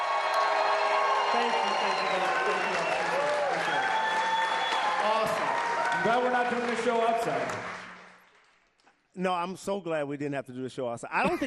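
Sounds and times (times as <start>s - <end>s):
whoops and shouted voices: 0.0s - 6.4s
large crowd cheering and applauding: 0.0s - 8.6s
speech: 1.4s - 3.0s, 6.0s - 7.8s, 9.2s - 11.4s.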